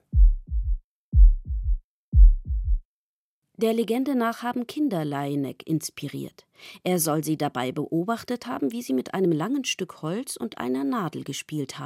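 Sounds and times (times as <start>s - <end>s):
heartbeat heard through a stethoscope: 0.0s - 2.9s
speech: 3.6s - 11.8s.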